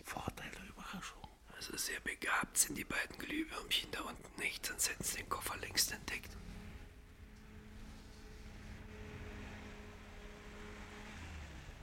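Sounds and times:
speech: 1.8s - 6.4s
car approaching: 5.2s - 11.8s.

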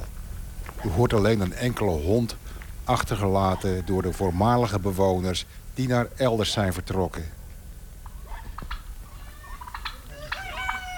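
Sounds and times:
speech: 0.8s - 7.4s
turkeys gobbling: 3.1s - 4.3s, 7.9s - 10.9s.

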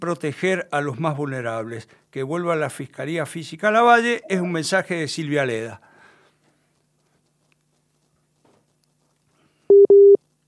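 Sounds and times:
speech: 0.0s - 5.9s
busy tone after a dropped phone call: 9.7s - 10.2s.

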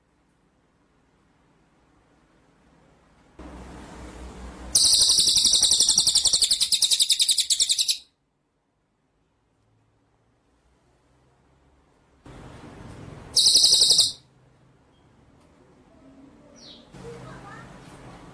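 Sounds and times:
White-rumped shama trilling song: 4.8s - 8.1s, 13.4s - 14.2s.

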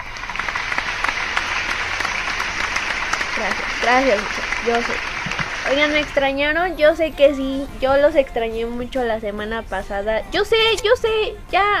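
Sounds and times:
crowd applause: 0.0s - 6.4s
speech: 3.4s - 11.7s.

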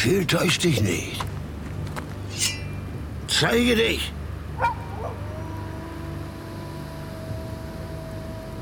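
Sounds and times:
speech: 0.0s - 1.4s, 3.4s - 5.2s
wolf barking and whimpering: 4.6s - 7.3s.

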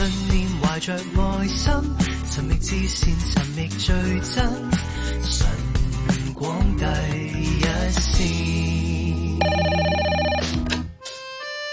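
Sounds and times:
speech: 0.8s - 10.6s
telephone ringing for an incoming call: 9.4s - 10.7s.

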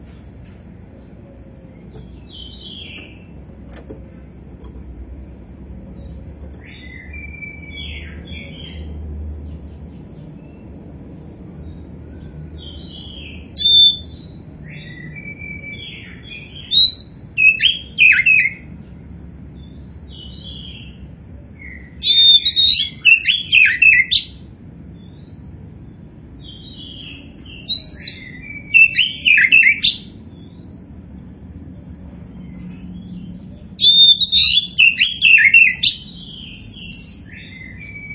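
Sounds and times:
Oriental magpie-robin song: 6.6s - 8.9s, 12.6s - 18.7s, 21.6s - 24.4s, 26.4s - 30.9s, 32.5s - 38.1s.

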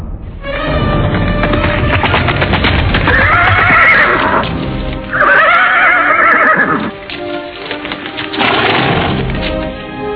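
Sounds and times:
hooves clip-clopping: 0.5s - 10.0s
horse neighing: 3.0s - 4.5s, 5.1s - 7.0s.

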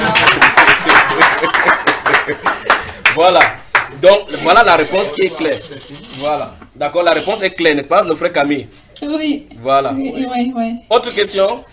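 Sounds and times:
laughter: 0.0s - 3.2s, 4.5s - 6.3s
congregation applauding at a home church service: 0.0s - 4.1s
speech: 3.2s - 11.7s.

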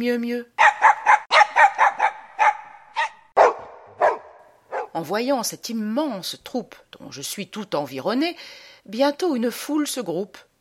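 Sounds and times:
speech: 0.0s - 0.9s, 5.0s - 10.5s
pack of dogs barking: 0.6s - 5.0s.

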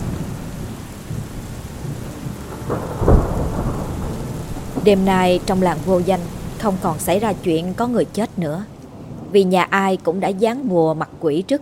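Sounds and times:
thunder: 0.0s - 8.3s
heavy rain: 0.0s - 11.6s
speech: 4.8s - 8.7s, 9.3s - 11.6s.

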